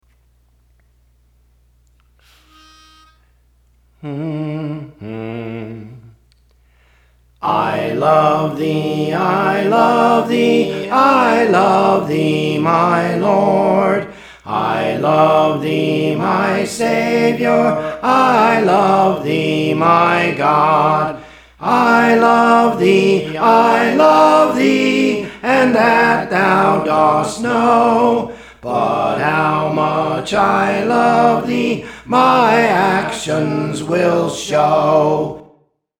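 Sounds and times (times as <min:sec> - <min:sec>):
soprano singing: 0:07.4 - 0:35.4.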